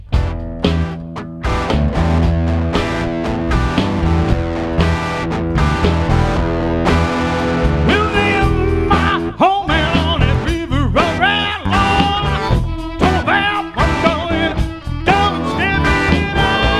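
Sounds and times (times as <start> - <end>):
live honky-tonk blues song: 0.1 - 16.7.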